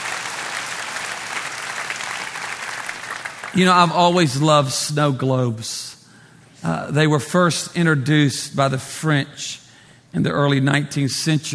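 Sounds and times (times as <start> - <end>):
audience clapping hands: 0.0 - 4.2
speech: 3.6 - 6.0, 6.6 - 11.5.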